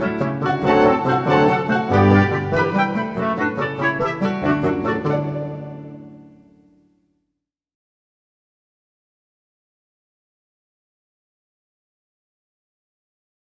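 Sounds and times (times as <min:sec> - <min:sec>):
instrumental music: 0:00.0 - 0:07.2.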